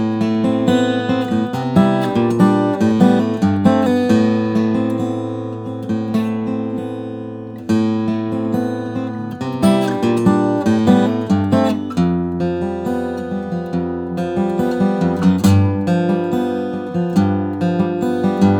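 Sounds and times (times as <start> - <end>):
Lowden F-35 Koa and Redwood flattop steel-string guitar: 0.0 - 18.5.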